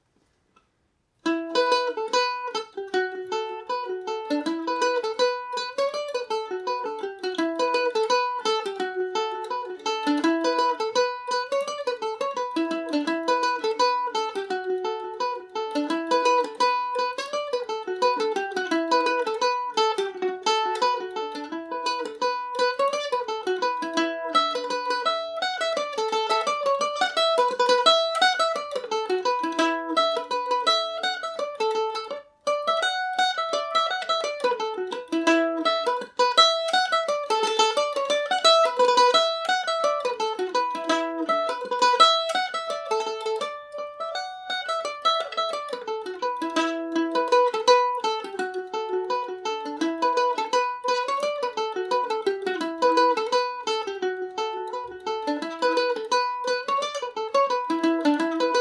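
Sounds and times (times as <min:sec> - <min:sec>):
Irish mandolin in E dorian: 0:00.0 - 0:58.5.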